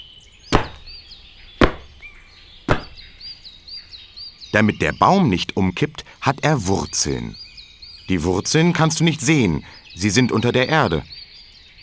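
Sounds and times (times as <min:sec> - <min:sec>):
feet stomping hard on the floor: 0:00.6 - 0:02.1, 0:02.7 - 0:03.2
speech: 0:04.5 - 0:07.4, 0:08.1 - 0:11.2.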